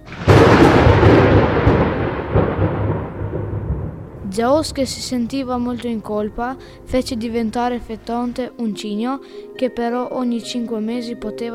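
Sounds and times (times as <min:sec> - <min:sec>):
thunderclap from lightning strike rolling into rumble: 0:00.0 - 0:08.2
speech: 0:04.4 - 0:11.5.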